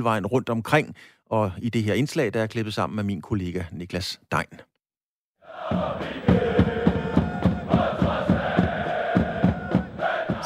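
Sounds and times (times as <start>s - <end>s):
speech: 0.0s - 4.7s
football stadium crowd chanting in unison: 5.4s - 10.4s
rhythmic claps or stomps: 5.7s - 10.4s.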